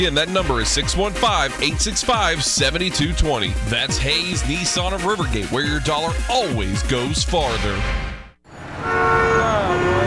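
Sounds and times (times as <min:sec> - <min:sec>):
speech: 0:00.0 - 0:08.1
sustained horn-like tone: 0:08.0 - 0:10.0
busy city street traffic rumble in Nashville: 0:08.5 - 0:10.0.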